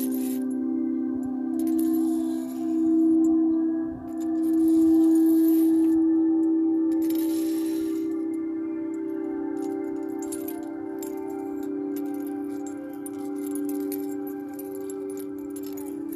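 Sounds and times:
Tibetan singing bowl humming: 0:00.0 - 0:16.1.

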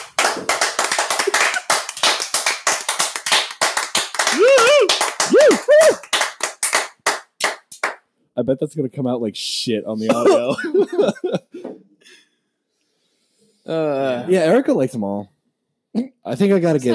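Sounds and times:
people clapping to welcome a guest: 0:00.0 - 0:08.0
speech: 0:08.4 - 0:11.8, 0:13.7 - 0:15.3, 0:16.0 - 0:16.9
laughter: 0:10.0 - 0:11.6.

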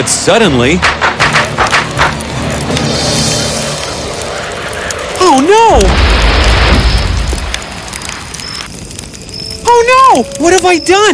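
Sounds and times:
speech: 0:00.0 - 0:01.1, 0:05.3 - 0:06.1, 0:09.7 - 0:11.1
firecrackers bursting in the sky: 0:00.0 - 0:11.1.

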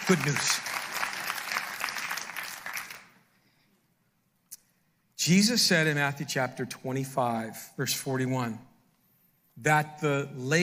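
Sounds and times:
audience clapping: 0:00.0 - 0:03.3
speech: 0:00.1 - 0:00.7, 0:05.2 - 0:08.7, 0:09.6 - 0:10.6.

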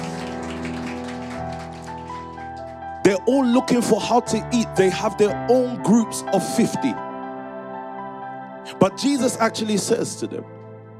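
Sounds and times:
round of applause: 0:00.0 - 0:03.3
speech: 0:03.2 - 0:07.0, 0:08.8 - 0:10.6.

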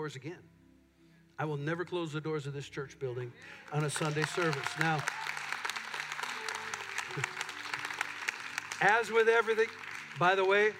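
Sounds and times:
speech: 0:00.0 - 0:00.6, 0:01.4 - 0:05.4, 0:08.8 - 0:10.7
church congregation applauding during a Sunday service: 0:03.4 - 0:10.7.

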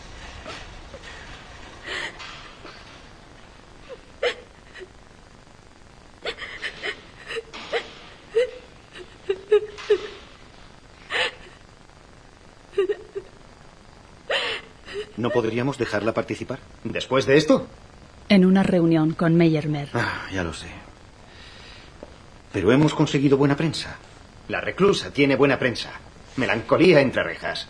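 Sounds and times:
woman crying in bed: 0:01.8 - 0:02.9, 0:03.8 - 0:05.0, 0:06.2 - 0:10.4, 0:11.0 - 0:11.7, 0:12.7 - 0:13.4, 0:14.2 - 0:15.6
speech: 0:15.2 - 0:20.8, 0:22.5 - 0:27.6.

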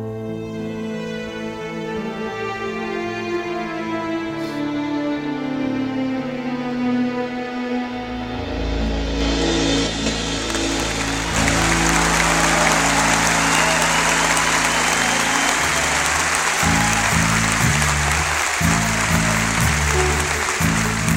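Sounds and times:
low musical tone: 0:00.2 - 0:21.1
audience applause: 0:10.0 - 0:21.1.

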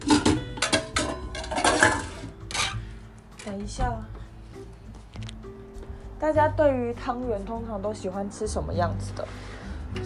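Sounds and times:
pots and pans being rummaged through: 0:00.0 - 0:02.9
speech: 0:03.5 - 0:04.2, 0:06.2 - 0:10.0.

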